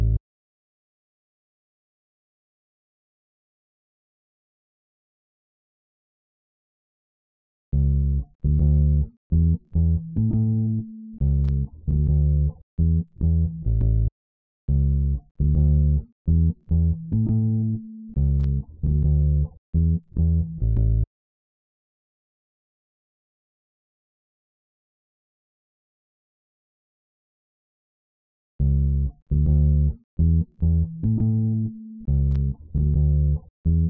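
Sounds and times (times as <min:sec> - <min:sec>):
bass: 0:00.0 - 0:00.2, 0:07.7 - 0:14.1, 0:14.7 - 0:21.1, 0:28.6 - 0:33.8.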